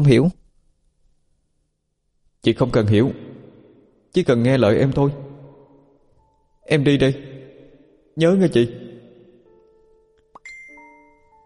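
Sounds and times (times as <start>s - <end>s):
speech: 0.0s - 0.4s, 2.4s - 3.3s, 4.1s - 5.2s, 6.7s - 7.3s, 8.2s - 8.8s
phone ringtone chime: 10.4s - 11.4s.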